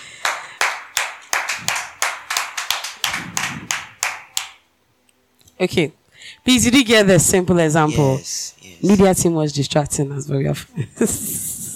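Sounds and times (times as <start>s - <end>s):
sparse hand claps: 0.0s - 4.6s
speech: 5.6s - 11.4s.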